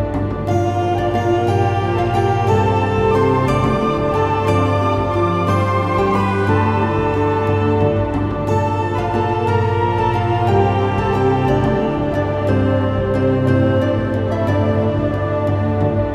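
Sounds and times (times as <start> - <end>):
Celtic fantasy hymn music: 0.0 - 16.1.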